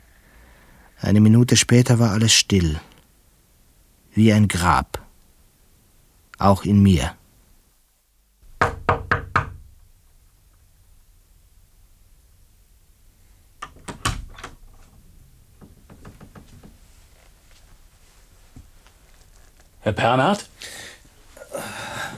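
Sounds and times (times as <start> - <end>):
faint hiss: 0.0 - 22.1
speech: 1.0 - 2.9, 4.2 - 5.0, 6.4 - 7.2, 19.9 - 20.8
knocking on a door: 8.4 - 9.7, 15.6 - 16.8.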